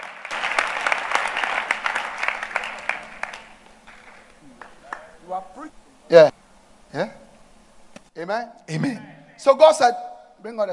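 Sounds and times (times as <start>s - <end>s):
audience clapping: 0.0s - 5.3s
speech: 5.5s - 7.2s, 8.2s - 10.7s.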